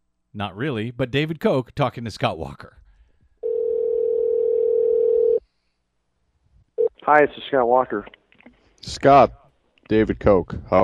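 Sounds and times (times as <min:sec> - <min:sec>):
speech: 0:00.4 - 0:02.8, 0:07.1 - 0:08.2, 0:08.8 - 0:10.8
telephone dial tone: 0:03.4 - 0:05.4.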